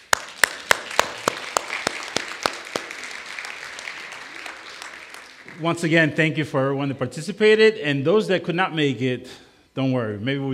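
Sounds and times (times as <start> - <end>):
audience clapping in unison: 0.0 - 6.2
speech: 5.6 - 10.5.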